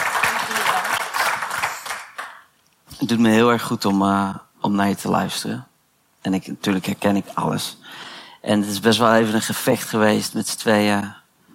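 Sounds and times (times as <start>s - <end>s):
audience applause: 0.0s - 2.5s
speech: 3.0s - 11.2s.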